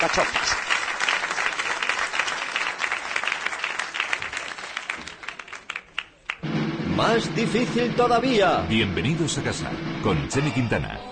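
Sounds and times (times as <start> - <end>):
speech: 0.0 - 0.7, 7.0 - 11.1
audience applause: 0.0 - 6.8.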